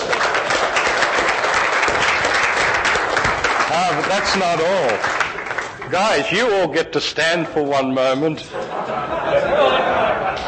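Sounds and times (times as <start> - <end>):
audience applause for a team and its speakers: 0.0 - 6.5
speech: 4.2 - 5.2, 5.9 - 10.4
laughter: 8.2 - 10.4.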